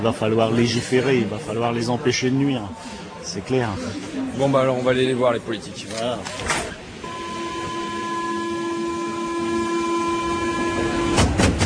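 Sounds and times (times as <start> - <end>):
speech: 0.0 - 6.8
Paris metro train interior: 6.3 - 11.6.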